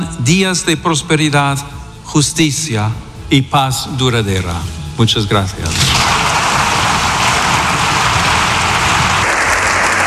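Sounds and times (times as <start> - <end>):
speech: 0.1 - 6.1
applause from a large crowd: 5.9 - 10.0.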